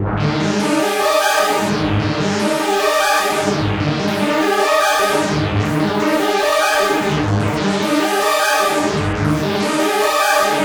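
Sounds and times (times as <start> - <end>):
synth arpeggio at 150: 0.4 - 10.6.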